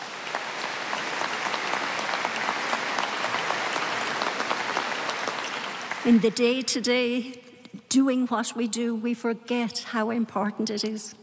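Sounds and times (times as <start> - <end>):
audience applause: 0.0 - 6.5
speech: 6.0 - 11.2.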